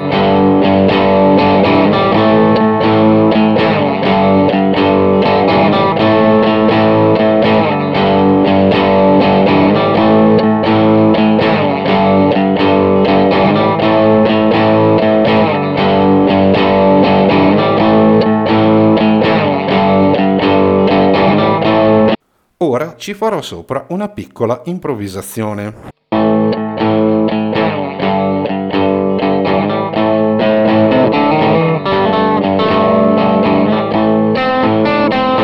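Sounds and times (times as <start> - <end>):
distorted electric guitar riff: 0.0 - 22.2, 25.6 - 35.4
speech: 23.0 - 25.9.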